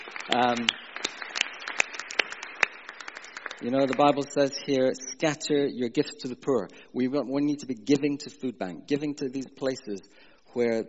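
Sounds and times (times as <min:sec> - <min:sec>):
audience applause: 0:00.0 - 0:04.2
speech: 0:00.3 - 0:00.8, 0:03.6 - 0:10.8.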